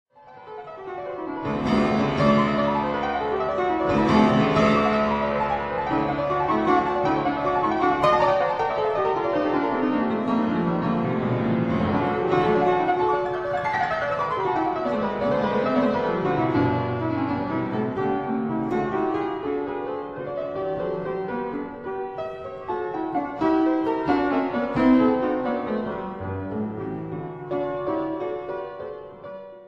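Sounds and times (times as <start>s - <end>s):
keyboard sonata in E minor, rondo allegretto: 0.2s - 29.6s.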